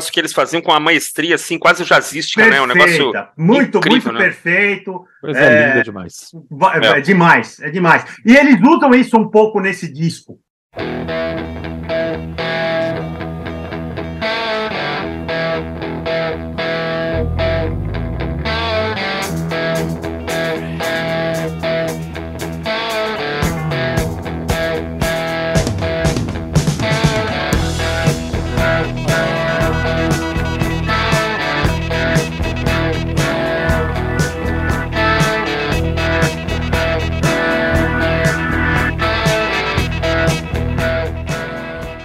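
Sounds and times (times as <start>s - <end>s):
speech: 0.0s - 11.6s
distorted rock guitar: 10.8s - 42.0s
rock keyboard: 11.1s - 42.0s
steady drums: 18.4s - 42.0s.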